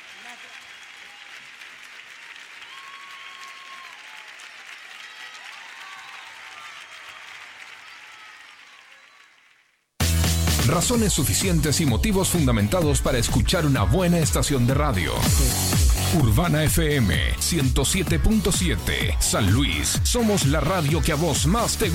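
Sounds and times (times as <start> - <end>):
audience applause: 0.0 - 9.8
speech: 10.7 - 21.9.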